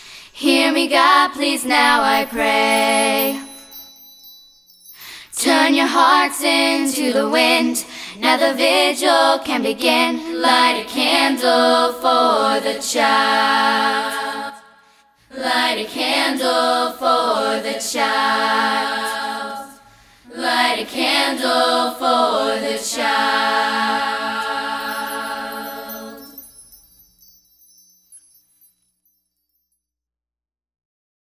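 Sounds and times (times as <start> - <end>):
a cappella singing: 0.0 - 3.7, 5.3 - 26.6.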